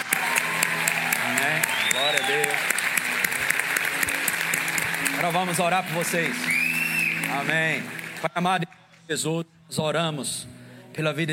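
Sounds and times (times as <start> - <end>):
church congregation applauding to welcome new members: 0.0 - 9.1
speech: 5.3 - 6.6, 7.3 - 11.3.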